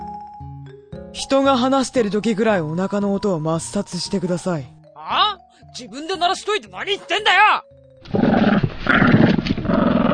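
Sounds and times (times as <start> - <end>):
speech: 1.2 - 8.2
dog growling: 8.1 - 10.1.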